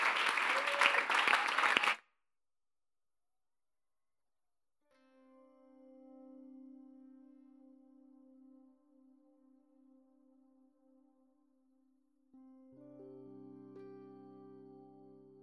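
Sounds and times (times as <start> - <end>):
audience applause: 0.0 - 2.0.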